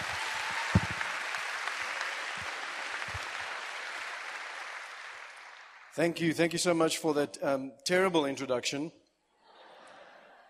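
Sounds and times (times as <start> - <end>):
audience applause welcoming a speaker: 0.0 - 6.2
speech: 6.0 - 9.0
laughter: 9.4 - 10.4.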